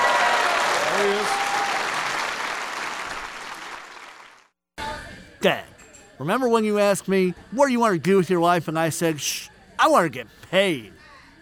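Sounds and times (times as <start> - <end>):
audience applause: 0.0 - 4.3
speech: 5.4 - 11.0.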